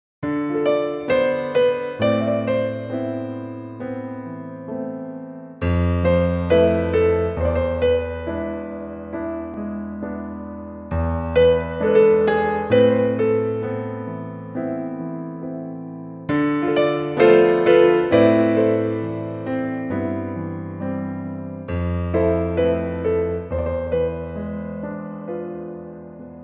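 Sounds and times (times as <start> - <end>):
piano: 0.2 - 26.4.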